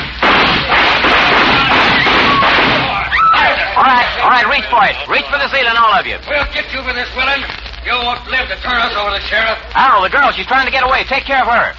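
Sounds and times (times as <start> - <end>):
volley of gunshots fired into the air: 0.0 - 3.1
speech: 4.0 - 11.7.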